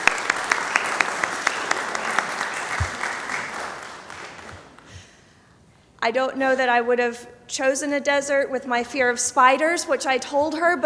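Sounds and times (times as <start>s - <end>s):
audience applause: 0.0s - 4.8s
speech: 6.0s - 10.8s.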